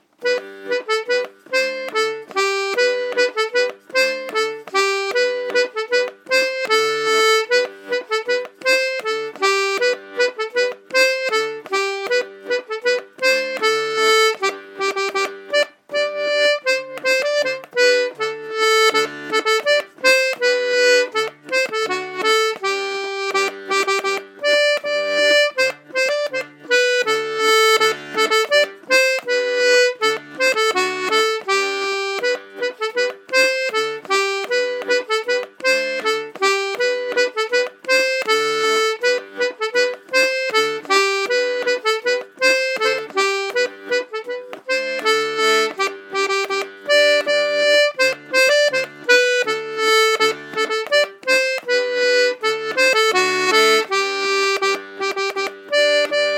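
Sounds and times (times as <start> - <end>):
accordion playing a hanter dro dance: 0.0 - 56.3.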